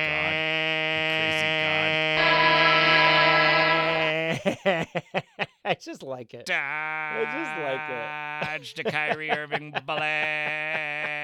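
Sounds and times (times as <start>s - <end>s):
laughter: 1.0s - 5.8s, 7.1s - 11.2s
long buzzy horn blast: 1.1s - 4.2s
speech: 4.4s - 11.2s.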